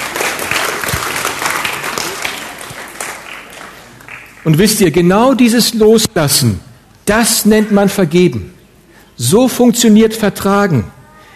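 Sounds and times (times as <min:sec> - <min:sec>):
audience applause: 0:00.0 - 0:04.5
speech: 0:04.4 - 0:08.6, 0:09.2 - 0:11.0.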